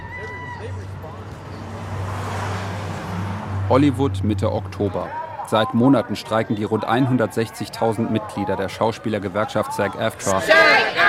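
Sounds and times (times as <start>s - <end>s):
road rumble: 0.0s - 11.0s
car engine drone on a road in southern California: 0.1s - 5.2s
speech: 3.7s - 11.0s.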